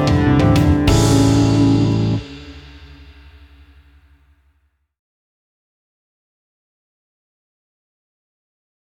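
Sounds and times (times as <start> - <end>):
rock guitar: 0.0 - 3.0.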